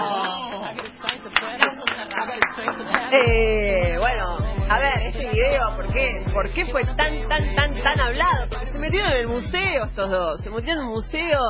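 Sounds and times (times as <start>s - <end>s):
audience applause: 0.0s - 3.3s
speech: 3.1s - 11.4s.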